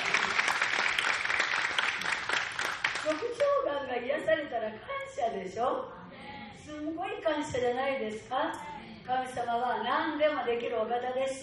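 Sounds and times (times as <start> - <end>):
audience applause: 0.0 - 3.3
speech: 3.1 - 6.0, 6.7 - 11.4.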